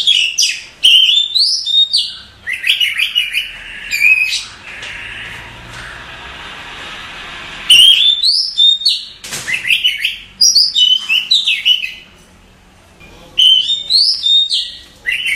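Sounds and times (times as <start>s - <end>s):
Oriental magpie-robin singing: 0.0s - 5.5s, 7.7s - 12.1s, 13.3s - 15.3s.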